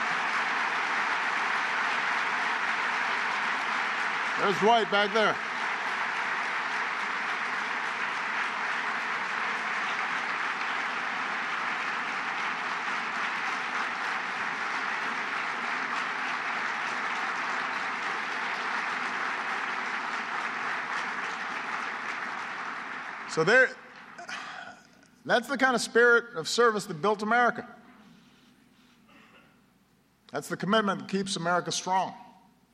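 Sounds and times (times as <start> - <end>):
audience applause: 0.0 - 24.8
speech: 4.4 - 5.5, 23.4 - 23.8, 25.2 - 27.8, 30.4 - 32.2.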